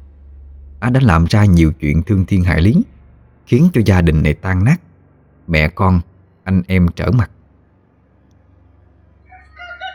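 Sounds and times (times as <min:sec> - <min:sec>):
low hum: 0:00.0 - 0:09.9
speech: 0:00.8 - 0:02.9, 0:03.5 - 0:04.8, 0:05.5 - 0:07.4
rooster crowing: 0:09.2 - 0:09.9.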